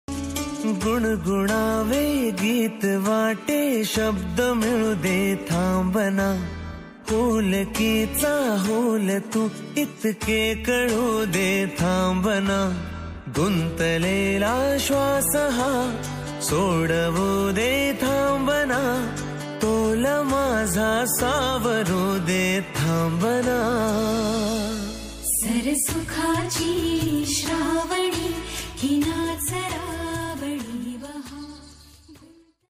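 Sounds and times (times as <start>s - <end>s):
Marathi love song: 0.1s - 32.6s.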